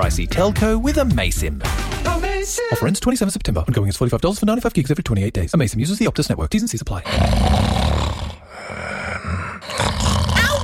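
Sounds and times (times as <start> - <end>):
speech: 0.0 - 7.8
man snoring loudly: 7.1 - 10.6.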